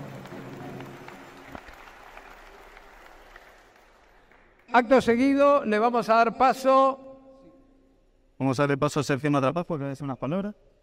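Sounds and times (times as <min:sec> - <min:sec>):
crowd applause: 0:00.0 - 0:04.7
speech: 0:04.7 - 0:07.0, 0:08.4 - 0:10.7.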